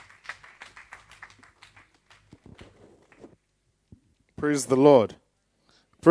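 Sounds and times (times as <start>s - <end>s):
audience hand clapping: 0.0s - 3.4s
speech: 4.4s - 5.2s.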